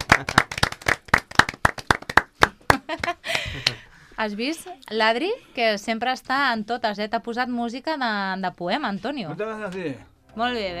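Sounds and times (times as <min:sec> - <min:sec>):
audience applause: 0:00.0 - 0:02.8
speech: 0:00.2 - 0:00.5, 0:04.2 - 0:10.7.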